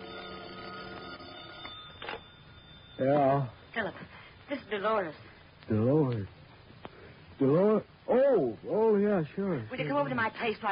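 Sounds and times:
telephone bell ringing: 0.0s - 4.1s
speech: 3.0s - 6.4s, 7.4s - 10.7s.

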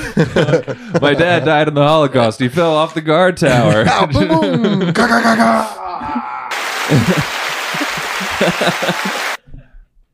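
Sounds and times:
laughter: 0.0s - 1.7s, 3.5s - 5.7s, 6.6s - 9.4s
speech: 0.2s - 6.3s, 6.9s - 7.4s, 8.4s - 9.3s
applause: 6.5s - 9.4s.

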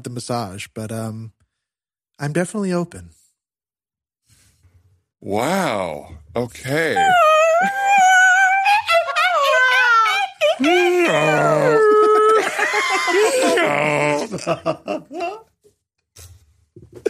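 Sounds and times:
speech: 0.0s - 1.4s, 2.2s - 3.2s, 5.2s - 7.8s, 10.6s - 11.9s, 12.7s - 15.5s
person imitating a donkey bray: 7.0s - 12.4s
laughter: 7.0s - 15.5s.

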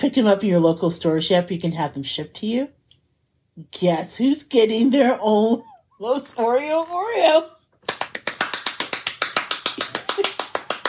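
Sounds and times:
speech: 0.0s - 2.8s, 3.6s - 7.6s
hand clapping next to the microphone: 7.8s - 10.8s.

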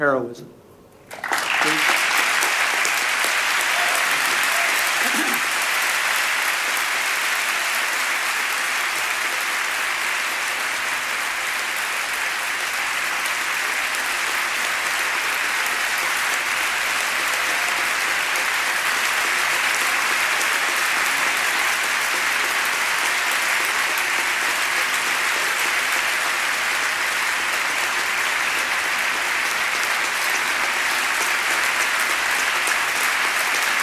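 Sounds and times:
large crowd applause: 1.0s - 33.8s.

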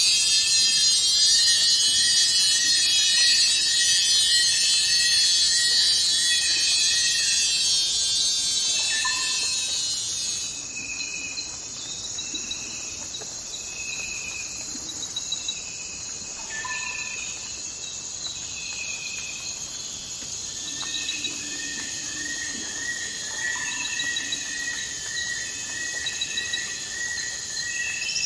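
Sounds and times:
cricket trilling: 0.0s - 28.2s.

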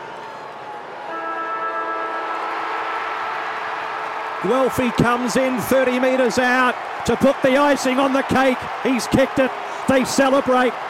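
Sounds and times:
football ground siren: 1.1s - 4.7s
speech: 4.4s - 10.8s.

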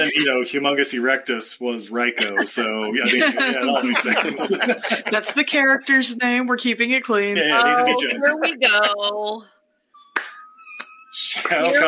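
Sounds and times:
laughter: 0.0s - 0.6s, 1.9s - 5.8s, 7.4s - 9.4s, 11.2s - 11.8s
speech: 0.0s - 9.6s, 11.2s - 11.8s
slow hand claps: 10.1s - 11.8s.

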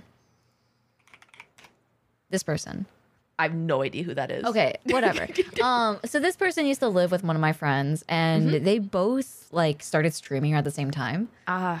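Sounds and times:
computer keyboard typing: 1.0s - 1.8s
speech: 2.3s - 11.7s.

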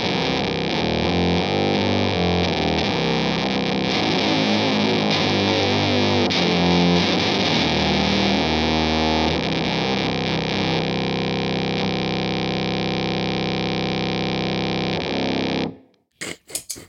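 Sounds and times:
fuzz effects pedal running a lower octave on guitar tuned to C standard: 0.0s - 16.0s.

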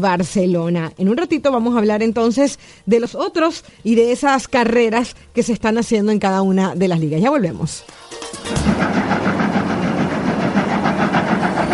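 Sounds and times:
speech: 0.0s - 9.0s
locomotive sound effect chugging: 8.0s - 11.7s.

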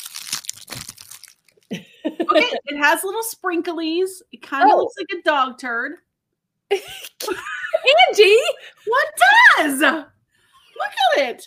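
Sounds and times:
snack wrapper being torn open: 0.0s - 1.7s
laughter: 1.7s - 2.7s
speech: 1.7s - 6.1s, 6.7s - 10.1s, 10.8s - 11.4s.

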